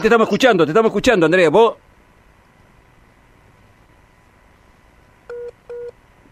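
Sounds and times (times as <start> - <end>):
speech: 0.0 - 1.8
faint hiss: 0.0 - 6.3
electronic keypad tones while redialing a WhatsApp call: 5.3 - 6.0.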